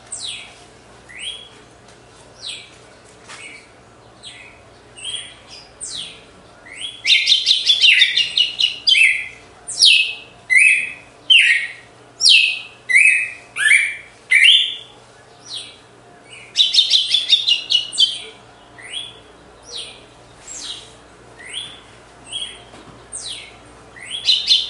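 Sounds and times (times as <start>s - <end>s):
Red-cowled cardinal whistling: 4.3s - 14.9s, 16.4s - 22.6s, 23.2s - 24.6s.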